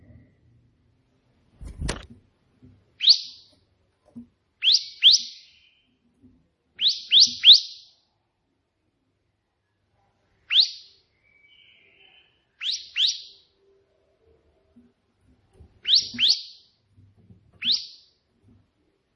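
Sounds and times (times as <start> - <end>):
prinia song: 3.0 - 3.5, 4.6 - 5.9, 6.8 - 8.0, 10.5 - 13.6, 15.8 - 16.8, 17.6 - 18.1.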